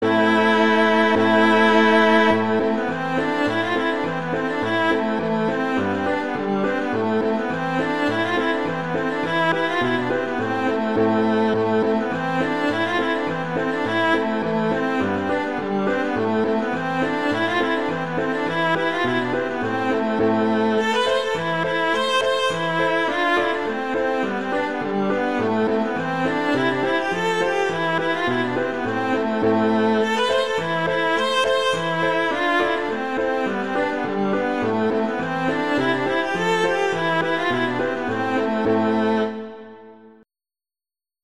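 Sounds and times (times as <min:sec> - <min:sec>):
piano playing a reel: 0:00.0 - 0:40.2
viola playing a reel: 0:00.0 - 0:40.2.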